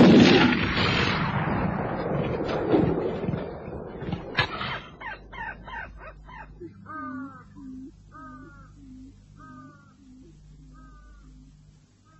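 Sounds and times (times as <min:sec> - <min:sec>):
rifle shot: 0:00.0 - 0:05.0.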